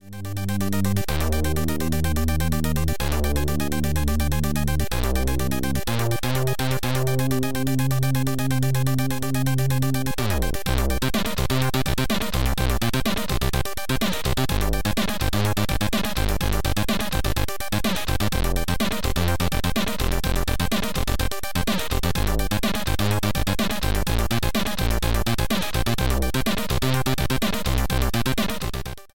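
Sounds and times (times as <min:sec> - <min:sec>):
Commodore 64 chiptune music: 0:00.0 - 0:29.1.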